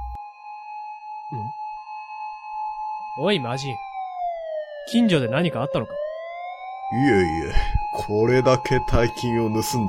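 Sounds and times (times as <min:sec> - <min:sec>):
police car siren: 0:00.0 - 0:09.8
speech: 0:03.2 - 0:03.9, 0:04.8 - 0:06.0, 0:06.9 - 0:09.8.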